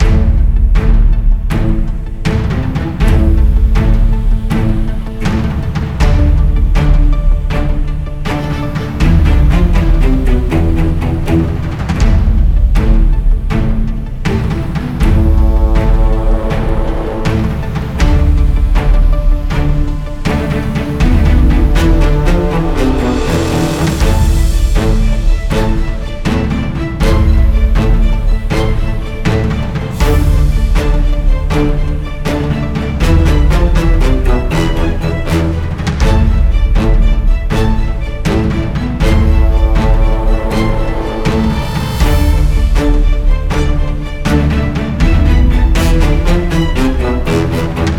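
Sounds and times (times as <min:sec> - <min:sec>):
tense combat music: 0:00.0 - 0:47.9.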